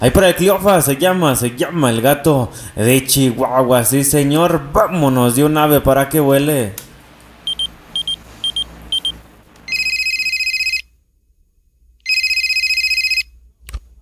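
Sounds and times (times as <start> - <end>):
speech: 0.0 - 6.8
telephone electronic chirps: 7.4 - 10.8
loud warbling telephone rings: 9.7 - 10.9, 12.1 - 13.3.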